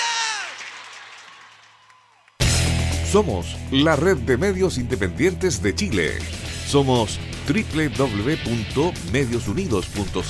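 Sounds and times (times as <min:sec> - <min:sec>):
audience applause: 0:00.0 - 0:02.5
speech: 0:03.1 - 0:10.2.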